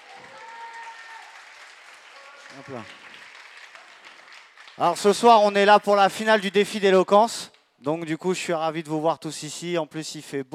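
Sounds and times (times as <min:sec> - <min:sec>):
audience applause at an eloquence contest final at the Agora: 0:00.0 - 0:06.6
speech: 0:02.5 - 0:03.2, 0:04.8 - 0:10.5.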